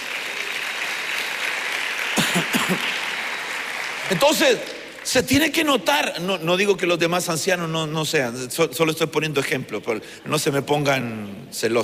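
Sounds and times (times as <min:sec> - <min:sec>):
audience applause: 0:00.0 - 0:05.6
speech: 0:02.7 - 0:02.9, 0:04.1 - 0:11.8.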